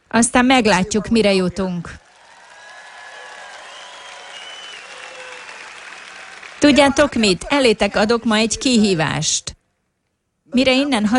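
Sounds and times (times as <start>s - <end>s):
speech: 0.1s - 2.0s, 6.6s - 9.6s, 10.5s - 11.1s
audience applauding weakly: 2.0s - 8.1s.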